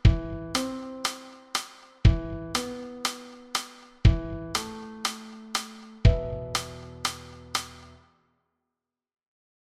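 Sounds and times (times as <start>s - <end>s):
metronome ticking: 0.6s - 8.0s
song: 0.6s - 8.0s.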